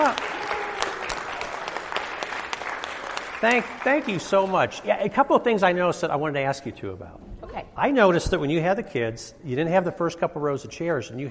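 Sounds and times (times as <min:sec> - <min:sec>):
audience applause: 0:00.0 - 0:04.9
speech: 0:03.4 - 0:11.2.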